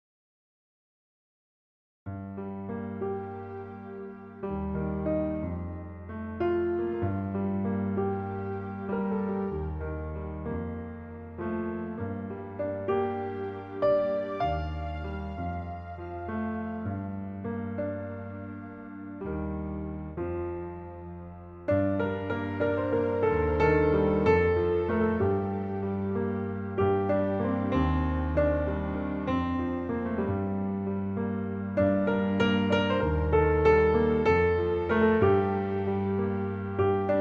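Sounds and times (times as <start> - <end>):
piano cover: 2.1 - 37.2.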